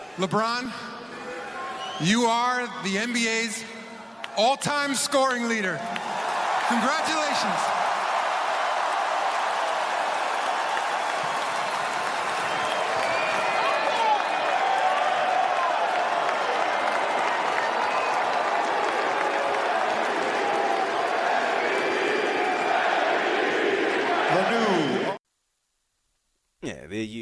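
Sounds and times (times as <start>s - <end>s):
speech: 0.2s - 0.9s, 2.0s - 3.8s, 4.4s - 7.7s
large arena crowd roaring and applauding for LeBron James: 4.2s - 25.2s.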